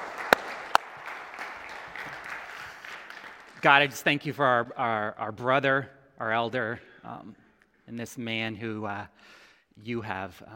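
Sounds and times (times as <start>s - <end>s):
audience clapping: 0.0s - 4.3s
speech: 3.6s - 10.5s.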